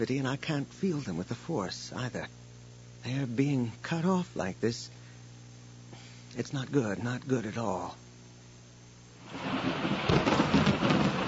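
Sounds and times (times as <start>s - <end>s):
speech: 0.0s - 2.4s, 3.0s - 5.0s, 6.4s - 8.0s
thunder crack during rainstorm: 9.2s - 11.2s.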